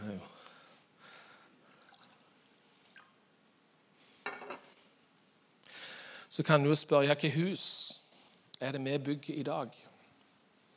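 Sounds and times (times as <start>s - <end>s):
liquid pouring into a glass: 1.7s - 3.1s
speech: 6.4s - 7.8s, 8.6s - 9.9s.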